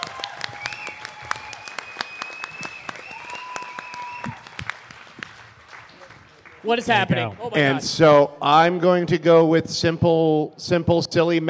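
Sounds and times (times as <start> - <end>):
people clapping for two teams after a game round: 0.0 - 7.7
speech: 6.6 - 11.4.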